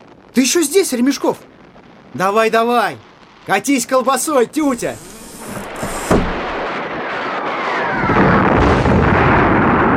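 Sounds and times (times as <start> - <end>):
speech: 0.4 - 5.1
artillery shells exploding: 6.4 - 9.9.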